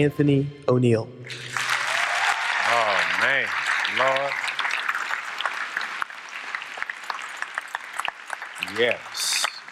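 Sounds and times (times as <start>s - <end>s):
speech: 0.0s - 1.6s, 3.3s - 4.4s, 8.8s - 9.4s
audience applause: 1.4s - 9.6s
whoops and cheers: 1.6s - 2.8s.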